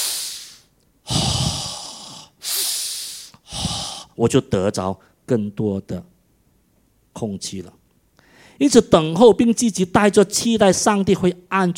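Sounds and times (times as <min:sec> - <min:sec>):
deep breath: 0:00.0 - 0:04.2, 0:08.2 - 0:08.6
speech: 0:04.2 - 0:06.1, 0:07.2 - 0:07.8, 0:08.6 - 0:11.7.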